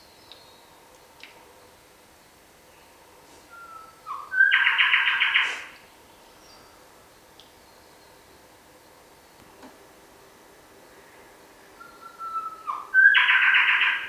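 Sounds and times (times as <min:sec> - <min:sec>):
Bower's shrikethrush Colluricincla boweri call: 0:03.5 - 0:05.8, 0:11.8 - 0:14.0.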